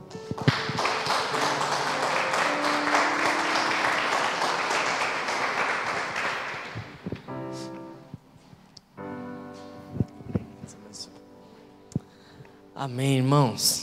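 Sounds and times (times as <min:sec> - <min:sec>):
audience applause: 0:00.0 - 0:07.1
speech: 0:12.8 - 0:13.8.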